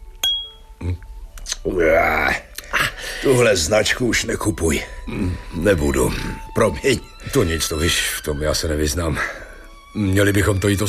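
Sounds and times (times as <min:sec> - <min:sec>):
glasses clinking in a toast: 0:00.2 - 0:00.6
speech: 0:00.8 - 0:02.5, 0:03.2 - 0:09.4, 0:10.0 - 0:10.8.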